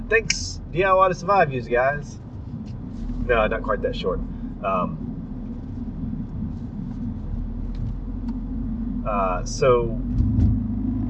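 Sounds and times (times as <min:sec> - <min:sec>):
car engine and road rumble heard from inside: 0:00.0 - 0:11.0
speech: 0:00.1 - 0:02.2, 0:03.3 - 0:05.1, 0:09.0 - 0:10.5.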